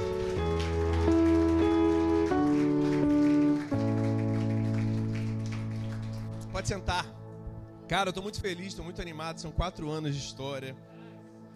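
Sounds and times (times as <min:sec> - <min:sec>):
audience applause: 0:00.0 - 0:06.9
keyboard chords: 0:00.0 - 0:11.5
speech: 0:06.6 - 0:07.2, 0:07.9 - 0:10.9.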